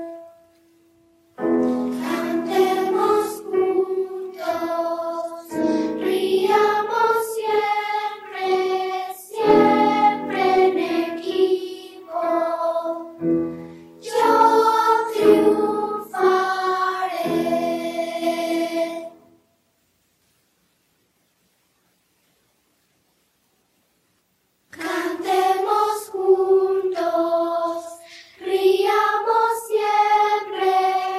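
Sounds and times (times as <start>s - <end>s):
people singing together as an exercise: 1.5s - 19.3s, 24.7s - 31.1s.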